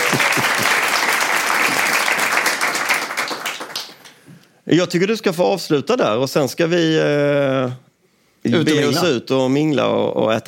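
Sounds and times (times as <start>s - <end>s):
audience applauding: 0.0s - 4.2s
speech: 4.7s - 10.4s.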